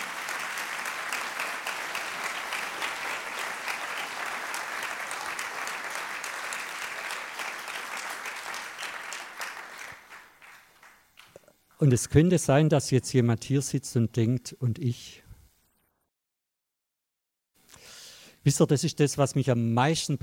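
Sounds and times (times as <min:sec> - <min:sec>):
audience clapping: 0:00.0 - 0:11.5
speech: 0:11.8 - 0:15.2, 0:18.4 - 0:20.2.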